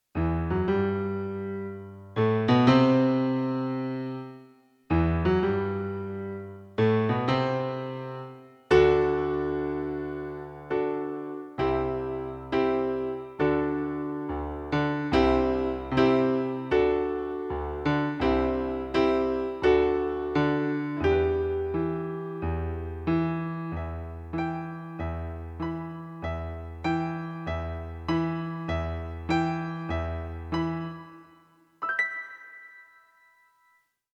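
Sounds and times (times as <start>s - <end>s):
piano: 0.0s - 34.1s.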